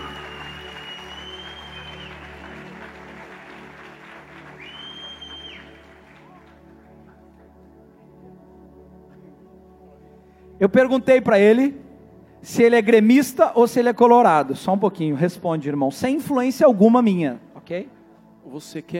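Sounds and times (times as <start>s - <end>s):
high whistle-like tones: 0.0s - 2.5s, 4.6s - 5.8s
warm crowd applause: 0.0s - 7.1s
speech: 10.6s - 11.8s, 12.4s - 18.9s.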